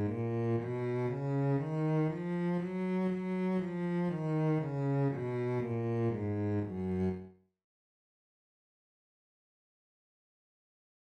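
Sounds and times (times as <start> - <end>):
bass playing one-octave scales in twelve keys: 0.0 - 7.3.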